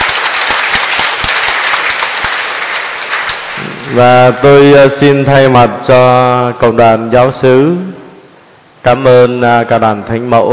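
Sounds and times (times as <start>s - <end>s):
large crowd applauding: 0.0s - 4.2s
speech: 3.9s - 7.9s, 8.8s - 10.5s.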